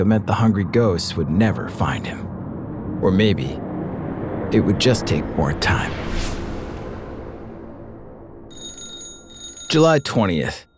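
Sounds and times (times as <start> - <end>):
speech: 0.0 - 2.3, 3.0 - 3.6, 4.5 - 6.4, 9.7 - 10.7
telephone ringing in Bruce Lee's Hong Kong home: 8.5 - 10.2.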